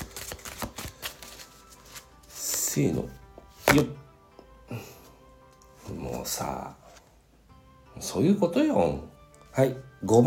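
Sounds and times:
oracle cards from a Japanese deity deck shuffling: 0.0 - 3.9
speech: 2.8 - 4.1, 4.7 - 5.0, 5.9 - 6.8, 8.0 - 10.2.

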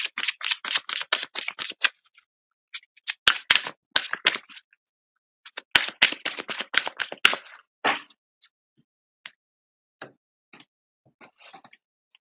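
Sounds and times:
tarot cards shuffled and drawn from a deck: 0.0 - 4.6, 5.5 - 8.1.

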